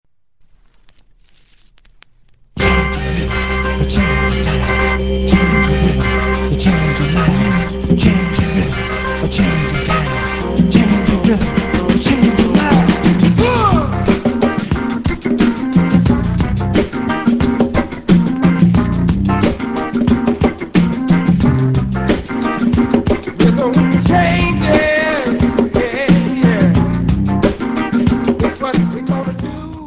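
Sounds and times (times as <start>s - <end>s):
rhythm changes jazz chord progression: 2.6s - 28.6s.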